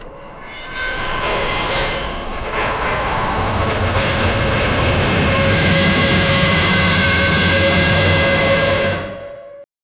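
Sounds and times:
mechanical noise: 0.8 - 9.2.

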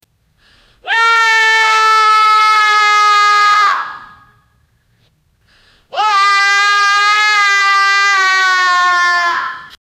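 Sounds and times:
person screaming: 0.8 - 4.3, 5.9 - 9.8.

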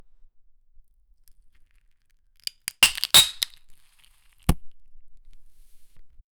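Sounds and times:
ice cold beer bottle: 2.6 - 3.6.

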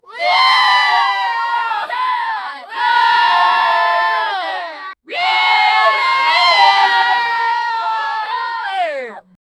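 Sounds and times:
energetic group of young people cheering: 0.1 - 9.2.

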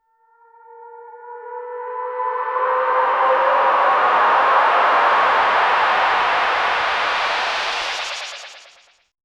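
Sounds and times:
viral risers: 2.5 - 8.9.

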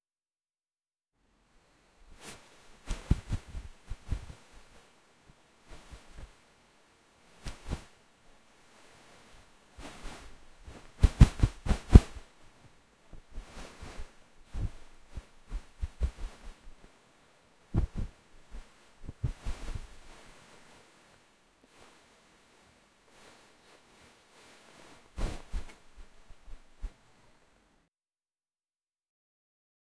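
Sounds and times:
clothes flapping: 2.2 - 4.7, 7.4 - 7.9, 9.8 - 12.3, 13.2 - 16.7, 17.7 - 20.3, 24.9 - 27.0.

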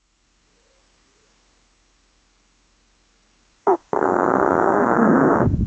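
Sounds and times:
person farting: 3.7 - 5.5.

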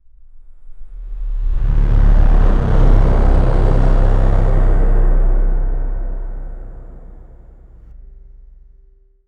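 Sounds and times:
short deep demon sound: 0.9 - 8.0.

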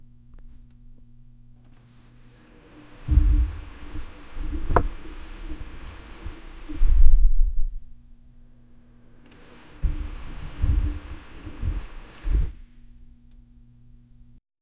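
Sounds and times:
air seat moving up: 1.6 - 7.3, 8.4 - 14.4.

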